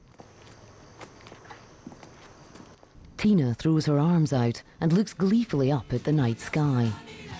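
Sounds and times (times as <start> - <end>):
woman's footsteps walking toward a porch-lit house at night: 0.0 - 3.1
speech: 3.2 - 7.2.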